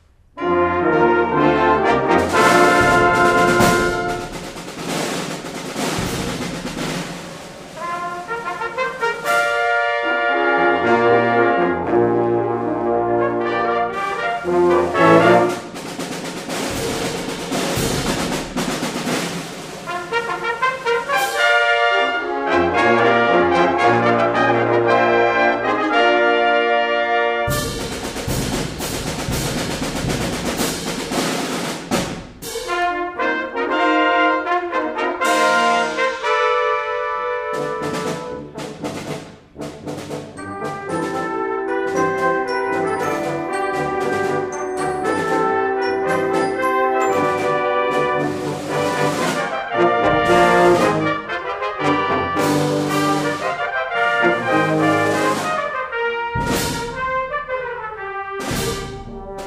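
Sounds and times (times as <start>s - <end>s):
brass ensemble fanfare: 0.4s - 59.4s.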